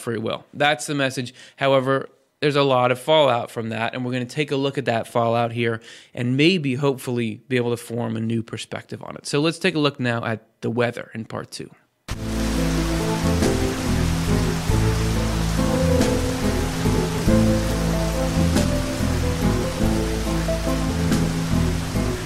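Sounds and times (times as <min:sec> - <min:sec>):
speech: 0:00.0 - 0:12.3
thunderstorm rain: 0:12.1 - 0:22.2.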